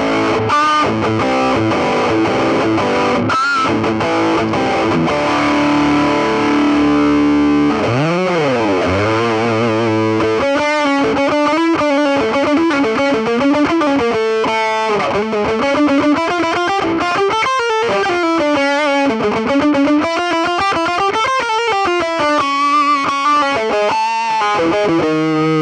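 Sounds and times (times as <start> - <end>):
Engl Gig Master 15 overdriven lead tone: 0.0 - 25.5.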